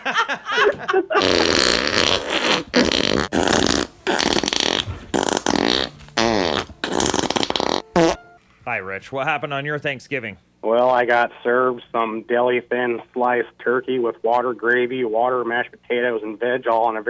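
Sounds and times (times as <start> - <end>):
laughter: 0.0 - 1.6
speech: 0.1 - 3.0, 9.0 - 17.0
loud wet sputtering fart sound effect: 1.2 - 8.4.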